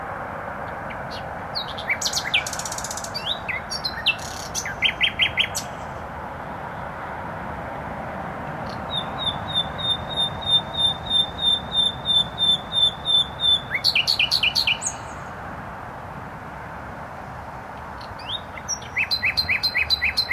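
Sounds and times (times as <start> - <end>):
road traffic drone: 0.0 - 20.3
nightingale singing: 0.9 - 6.0, 8.6 - 15.3, 18.0 - 20.3.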